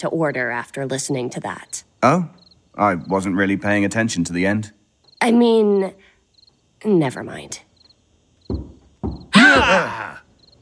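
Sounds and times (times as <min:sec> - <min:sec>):
speech: 0:00.0 - 0:06.1, 0:06.8 - 0:07.7, 0:09.5 - 0:10.1
knocking on a door: 0:08.4 - 0:09.8
person groaning: 0:09.3 - 0:10.2.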